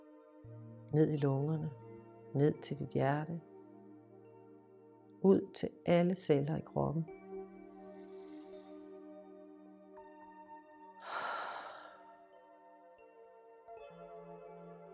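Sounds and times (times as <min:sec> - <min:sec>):
speech: 0:00.4 - 0:03.5, 0:05.2 - 0:07.2
slow exhale during a guided relaxation: 0:08.0 - 0:09.0, 0:11.0 - 0:12.1.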